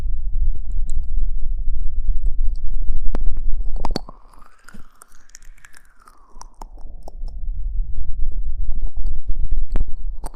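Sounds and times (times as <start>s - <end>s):
aloe vera gel low rumbling rub: 0.0s - 4.2s, 5.4s - 10.3s.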